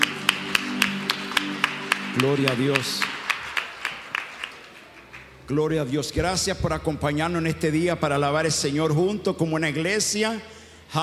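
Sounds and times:
audience clapping in unison: 0:00.0 - 0:05.5
speech: 0:02.2 - 0:03.1, 0:05.5 - 0:11.0.

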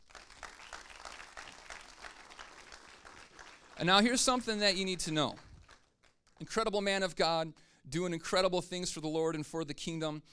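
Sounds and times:
church congregation applauding a guest speaker: 0:00.0 - 0:06.7
speech: 0:03.8 - 0:05.4, 0:06.4 - 0:10.3.

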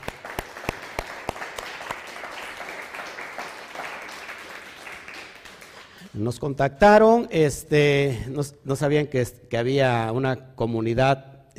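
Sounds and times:
audience applause: 0:00.0 - 0:06.1
speech: 0:06.2 - 0:11.5.

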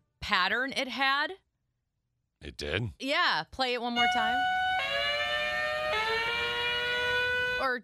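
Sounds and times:
speech: 0:00.3 - 0:01.4, 0:02.4 - 0:04.6, 0:07.6 - 0:07.8
strange-sounding buzzy electronic doorbell: 0:04.0 - 0:07.8.

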